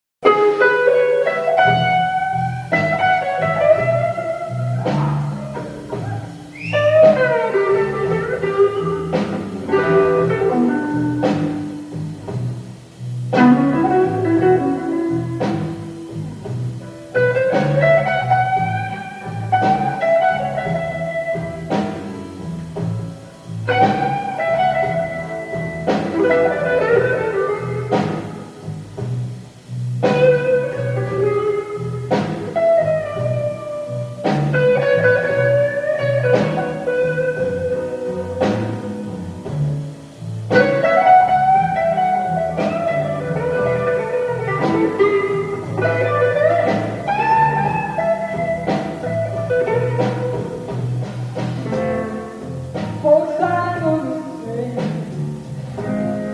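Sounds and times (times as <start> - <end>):
blues music: 0.2 - 56.3.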